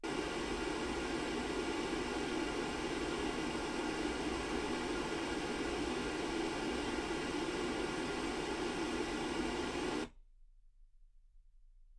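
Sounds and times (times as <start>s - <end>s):
pink noise at 48kHz: 0.0s - 10.1s.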